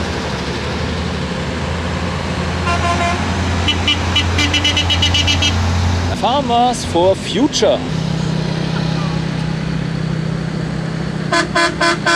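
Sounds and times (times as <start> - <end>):
Mercedes-Benz truck passing: 0.0 - 12.1
Mercedes-Benz truck honking: 2.6 - 5.9, 11.3 - 12.1
speech: 6.2 - 8.0, 11.3 - 12.1.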